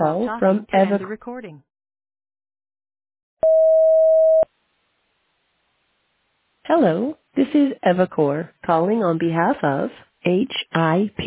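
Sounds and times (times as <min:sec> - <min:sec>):
speech: 0:00.0 - 0:01.7, 0:06.7 - 0:11.2
voicemail tone: 0:03.4 - 0:04.5.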